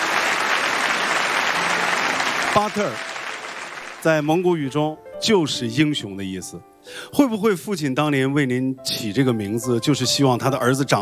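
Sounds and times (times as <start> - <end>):
audience applause honouring a firefighter on a televised programme: 0.0 - 4.5
speech: 2.6 - 3.0, 4.0 - 11.0.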